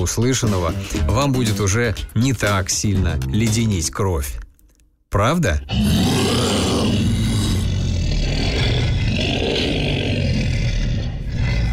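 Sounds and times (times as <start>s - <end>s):
speech: 0.0s - 4.4s, 5.1s - 6.4s
human voice imitating a monster roar: 5.7s - 11.7s.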